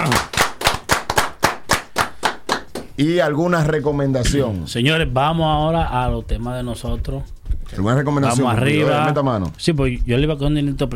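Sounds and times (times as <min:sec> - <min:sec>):
audience hand claps on a live variety show: 0:00.0 - 0:03.0
speech: 0:03.0 - 0:10.9.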